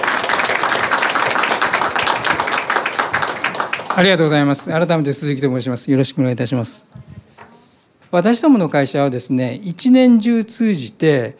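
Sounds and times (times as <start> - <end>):
crowd applauding: 0.0 - 4.7
speech: 4.0 - 7.1, 8.1 - 11.3.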